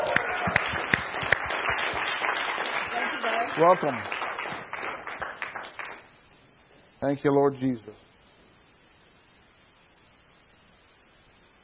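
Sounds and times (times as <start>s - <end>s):
church congregation applauding in welcome: 0.0s - 6.1s
speech: 3.6s - 4.2s, 7.0s - 8.1s.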